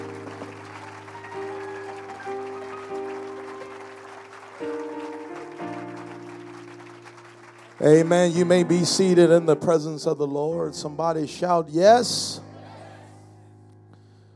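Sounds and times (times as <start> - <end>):
audience clapping hands: 0.0 - 9.2
speech: 7.8 - 12.5.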